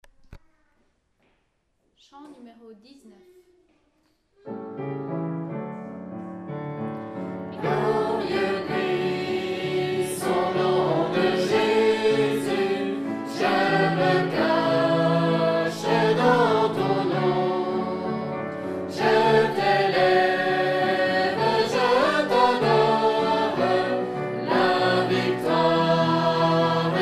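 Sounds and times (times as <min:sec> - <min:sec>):
chanting: 0:07.6 - 0:26.9.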